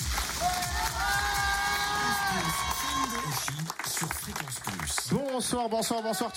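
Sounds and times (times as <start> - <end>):
TV studio audience cheering: 0.0 - 6.3
people shouting: 0.4 - 3.4
speech: 5.1 - 6.3.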